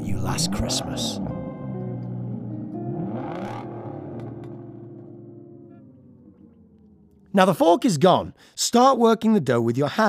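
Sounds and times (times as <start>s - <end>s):
car pulling out of a cobbled driveway: 0.0s - 7.3s
speech: 0.2s - 1.3s, 7.4s - 10.0s.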